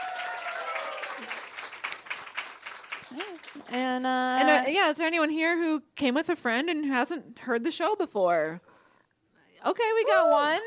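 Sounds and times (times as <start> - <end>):
live audience clapping: 0.0 - 4.1
speech: 3.1 - 8.7, 9.6 - 10.6.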